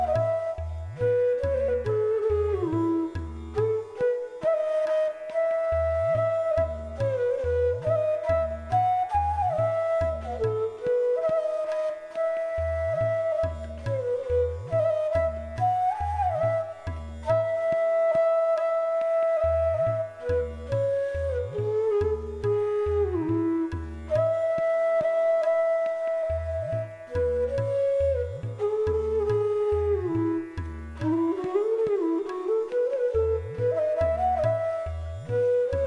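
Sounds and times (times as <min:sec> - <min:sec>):
flute playing a raga: 0:00.0 - 0:35.8.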